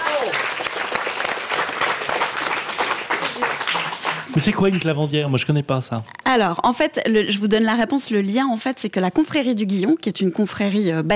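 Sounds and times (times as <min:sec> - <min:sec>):
audience applause: 0:00.0 - 0:05.2
speech: 0:04.4 - 0:11.1.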